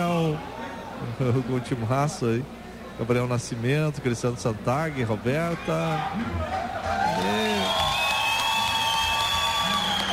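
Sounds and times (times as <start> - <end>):
speech: 0.0 - 8.0
crowd cheering at a festival: 5.5 - 10.1
whistles: 7.4 - 10.1.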